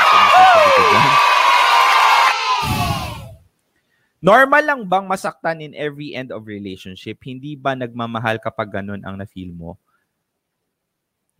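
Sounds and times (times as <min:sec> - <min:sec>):
crowd applause: 0:00.0 - 0:03.2
speech: 0:04.2 - 0:09.8.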